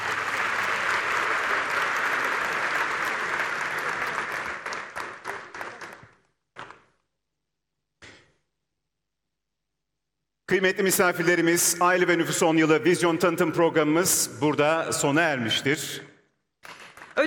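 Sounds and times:
audience applause at an award ceremony for a family and population programme: 0.0s - 6.7s
speech: 10.5s - 16.1s.

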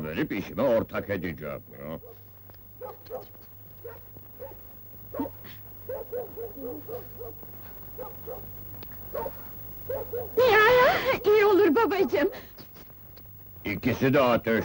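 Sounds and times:
low electrical hum: 0.0s - 14.6s
speech: 0.2s - 2.2s, 2.9s - 4.1s, 5.1s - 12.5s, 13.6s - 14.6s
dog barking: 2.0s - 10.4s.

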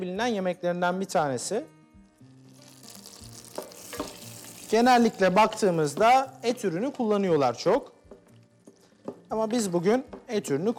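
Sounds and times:
speech: 0.0s - 1.8s, 4.7s - 7.9s, 9.0s - 10.7s
butter melting and sizzling in a pan for Ankara tava: 2.4s - 6.4s.

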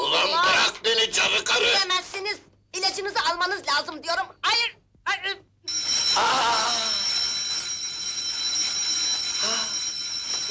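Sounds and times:
speech: 1.1s - 7.0s
bell ringing: 5.7s - 10.4s.

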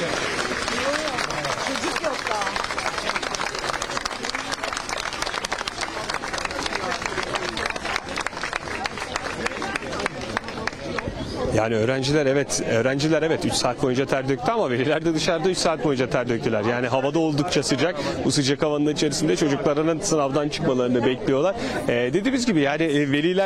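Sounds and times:
parents applauding outside exam building: 0.0s - 11.2s
crowd chatter: 0.0s - 23.4s
speech: 11.6s - 23.4s.

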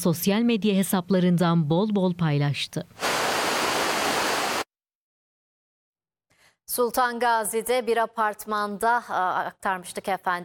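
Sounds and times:
speech: 0.0s - 3.0s, 6.7s - 10.4s
stream rushing near Saitabat village on Uludağ: 3.0s - 4.6s.

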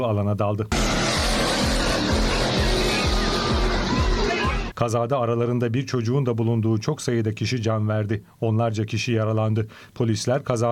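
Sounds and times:
speech: 0.0s - 2.5s, 4.8s - 10.7s
modified monster truck engine roaring driving over obstacles in Popayán, Colombia: 0.7s - 4.7s
heavy low thumps: 0.8s - 4.7s.

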